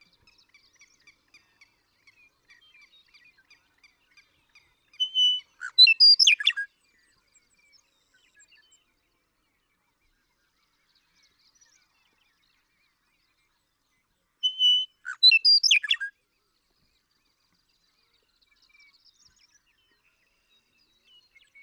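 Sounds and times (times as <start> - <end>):
western meadowlark singing: 5.0 - 6.6, 14.4 - 16.1.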